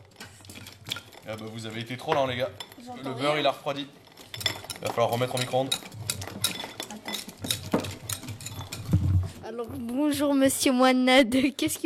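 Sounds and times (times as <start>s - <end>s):
whisk mixing chocolate in a bowl: 0.0s - 9.4s
speech: 1.3s - 5.9s, 9.5s - 11.8s.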